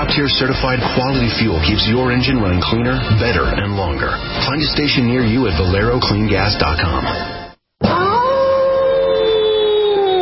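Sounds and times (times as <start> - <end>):
speech: 0.1 - 7.4
werewolf howling: 7.8 - 10.2.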